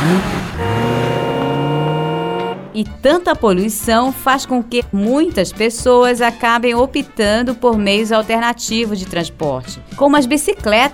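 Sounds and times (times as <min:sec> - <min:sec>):
loud vehicle engine droning in street traffic: 0:00.0 - 0:03.0
speech: 0:02.8 - 0:10.9.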